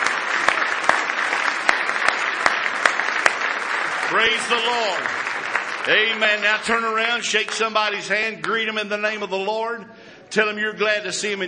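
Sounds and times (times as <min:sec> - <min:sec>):
audience clapping hands: 0:00.0 - 0:08.6
speech: 0:04.1 - 0:05.2, 0:05.8 - 0:11.4.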